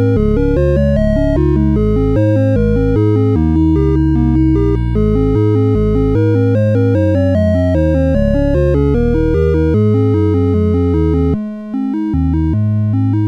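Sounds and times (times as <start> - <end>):
computer Christmas card chiptune music on SID CSG8580R5 chip: 0.0 - 13.2.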